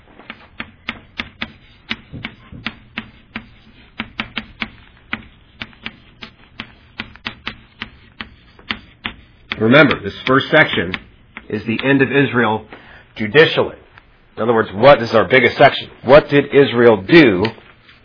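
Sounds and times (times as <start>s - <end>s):
chalk writing on a board: 0.2s - 11.5s, 17.4s - 18.0s
speech: 9.6s - 13.8s, 14.4s - 17.6s.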